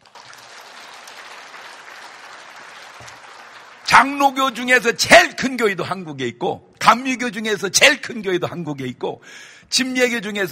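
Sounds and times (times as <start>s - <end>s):
audience applause: 0.0s - 4.2s
speech: 4.0s - 10.5s.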